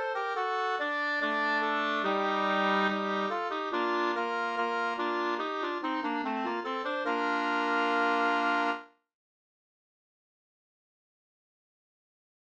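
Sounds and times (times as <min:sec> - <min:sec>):
folk walking tune: 0:00.1 - 0:08.8.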